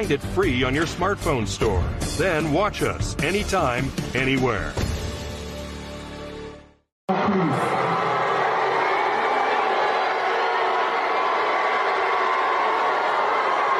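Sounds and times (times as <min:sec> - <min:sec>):
speech: 0:00.0 - 0:04.9
large crowd booing at a Somali music festival: 0:07.1 - 0:13.7.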